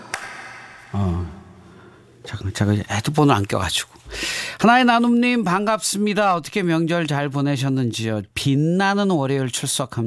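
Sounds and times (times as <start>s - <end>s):
clapping with echo effect: 0.0s - 1.0s
speech: 0.9s - 1.3s, 2.3s - 10.0s.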